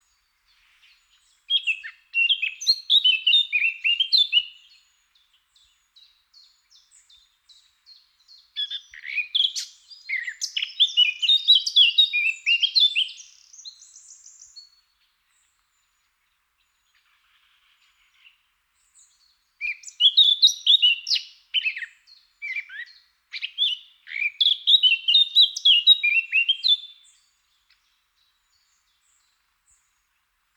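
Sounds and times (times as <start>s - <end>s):
Eurasian blackcap song: 0.9s - 14.8s, 19.0s - 29.8s.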